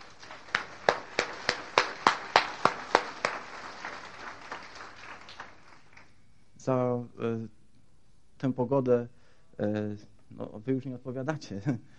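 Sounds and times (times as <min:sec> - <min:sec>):
audience applause: 0:00.0 - 0:06.1
speech: 0:06.6 - 0:07.6, 0:08.4 - 0:11.9.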